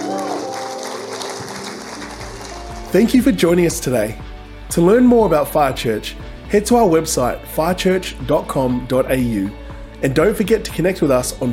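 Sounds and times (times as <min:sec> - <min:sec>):
round of applause: 0:00.0 - 0:03.2
speech: 0:02.9 - 0:11.5.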